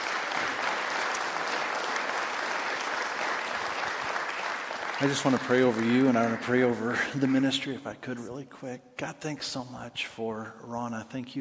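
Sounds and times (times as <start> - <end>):
audience applause: 0.0 - 7.8
speech: 5.0 - 11.3.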